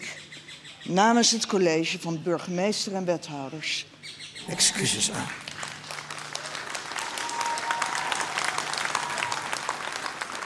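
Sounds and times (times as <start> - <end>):
speech: 0.8 - 5.4
audience applause: 4.5 - 10.4.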